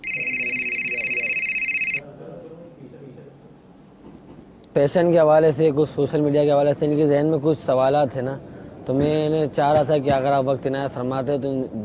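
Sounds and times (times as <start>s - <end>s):
electronic telephone ring tone: 0.0s - 2.0s
faint noise: 0.0s - 11.8s
speech: 4.8s - 11.8s.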